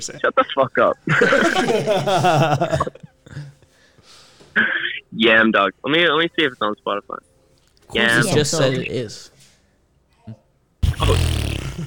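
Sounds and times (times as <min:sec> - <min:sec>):
speech: 0:00.0 - 0:03.4, 0:05.2 - 0:07.3, 0:07.9 - 0:09.3, 0:11.0 - 0:11.8
laughter: 0:01.0 - 0:03.1
fart noise sound effect: 0:10.8 - 0:11.8.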